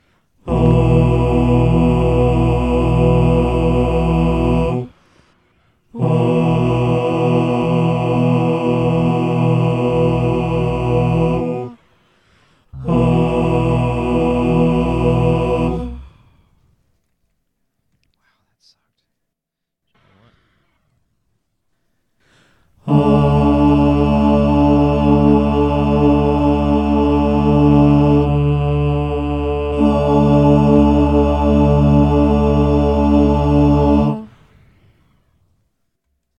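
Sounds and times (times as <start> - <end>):
large choir singing: 0.4 - 5.0, 5.9 - 11.8, 12.8 - 16.3, 22.8 - 34.4.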